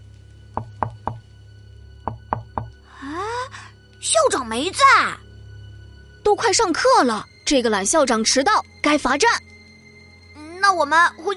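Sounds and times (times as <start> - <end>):
knocking on a door: 0.6 - 1.2, 2.0 - 2.8
speech: 4.0 - 5.2, 6.3 - 9.4, 10.8 - 11.3.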